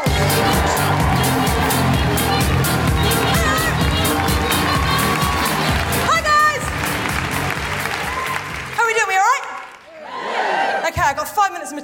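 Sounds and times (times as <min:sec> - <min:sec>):
audience at a live comedy benefit show in Manchester cheering and applauding: 0:00.0 - 0:11.0.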